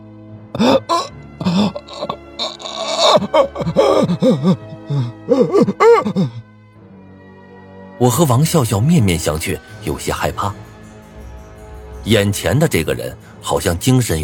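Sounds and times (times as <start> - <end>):
speech: 0.5 - 6.4, 8.0 - 10.6, 12.0 - 14.2
man crying in pain: 0.6 - 6.4.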